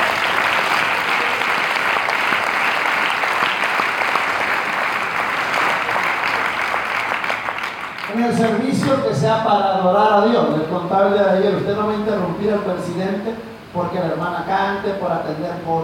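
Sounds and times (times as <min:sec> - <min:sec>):
audience applause: 0:00.0 - 0:09.0
speech: 0:08.2 - 0:15.8.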